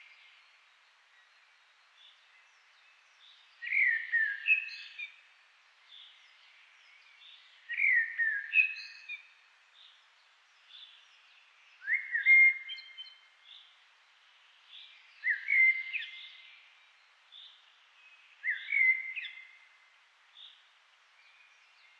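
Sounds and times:
Eurasian blackbird song: 3.2s - 5.2s, 6.9s - 9.3s, 11.8s - 13.6s, 14.8s - 16.6s, 18.1s - 19.7s.

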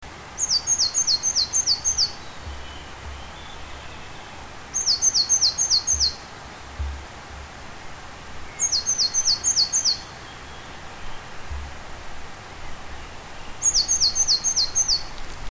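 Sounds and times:
great tit calling: 0.3s - 15.4s.

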